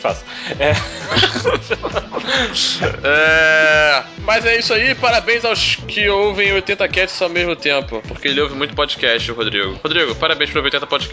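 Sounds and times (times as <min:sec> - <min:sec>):
speech: 0:00.0 - 0:11.1
person chuckling: 0:00.4 - 0:03.7
voice imitating a goat bleat: 0:02.6 - 0:04.0.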